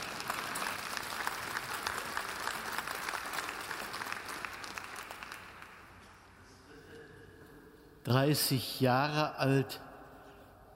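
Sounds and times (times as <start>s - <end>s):
church audience applause: 0.0s - 6.0s
speech: 8.1s - 9.9s.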